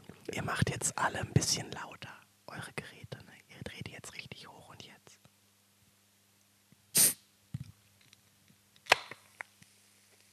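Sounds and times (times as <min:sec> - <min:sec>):
speech: 0:00.3 - 0:03.0
can being slowly opened: 0:07.0 - 0:07.2, 0:08.8 - 0:09.4.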